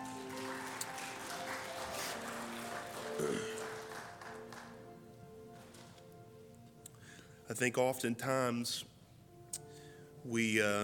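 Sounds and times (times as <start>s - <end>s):
audience hand clap of praise: 0.0s - 4.9s
speech: 7.5s - 8.9s, 10.3s - 10.8s.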